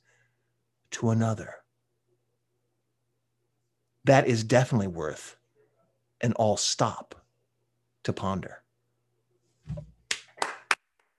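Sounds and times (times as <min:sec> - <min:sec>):
speech: 0:01.0 - 0:01.6, 0:04.0 - 0:05.4, 0:06.2 - 0:07.2, 0:08.0 - 0:08.6, 0:09.7 - 0:09.9
soft thump: 0:09.7 - 0:09.9
one person clapping hands: 0:10.0 - 0:11.1.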